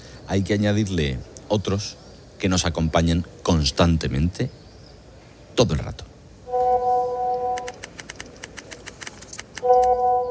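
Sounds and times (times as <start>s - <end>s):
speech: 0.3s - 4.6s, 5.6s - 6.1s
mobile phone steady electronic tone: 6.5s - 7.8s, 9.6s - 10.3s
mobile phone sharp clicks and taps: 7.5s - 9.9s.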